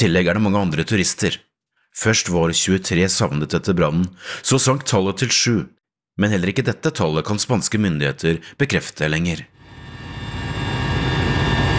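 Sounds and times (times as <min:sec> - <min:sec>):
speech: 0:00.0 - 0:09.6
helicopter flying over a forest fire in Spain: 0:09.6 - 0:11.7.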